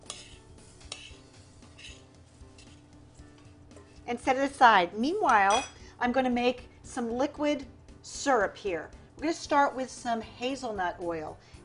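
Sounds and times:
spoon stirring flax seeds, chia seeds and wheat germ in a bowl: 0.0s - 2.0s, 2.6s - 2.8s
speech: 4.1s - 11.6s.

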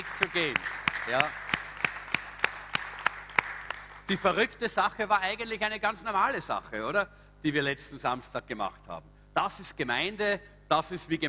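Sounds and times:
audience applause: 0.0s - 4.1s
speech: 0.2s - 1.4s, 4.1s - 11.2s.

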